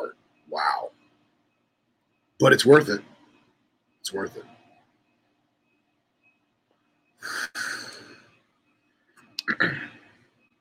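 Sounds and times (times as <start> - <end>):
speech: 2.4 - 3.1, 4.0 - 4.6
throat clearing: 9.4 - 10.1.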